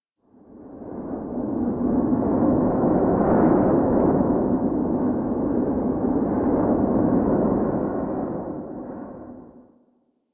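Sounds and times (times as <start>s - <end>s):
wind in a half-open forest cave: 0.3s - 9.7s.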